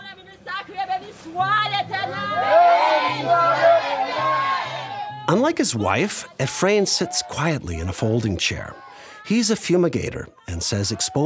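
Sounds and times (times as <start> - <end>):
speech: 0.7 - 2.5, 5.3 - 11.2
church congregation calling out: 2.1 - 11.2
people crying: 2.1 - 11.2.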